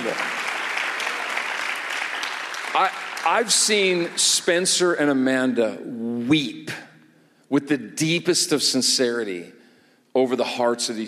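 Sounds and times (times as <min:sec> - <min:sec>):
audience hand clapping: 0:00.0 - 0:04.4
speech: 0:02.8 - 0:06.8, 0:07.6 - 0:11.0.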